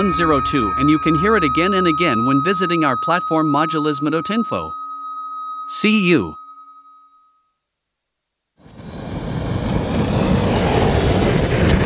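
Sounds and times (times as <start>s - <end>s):
speech: 0.0s - 4.8s, 5.7s - 6.4s
wood gas burning from downward-turned burner nozzles: 8.7s - 11.8s.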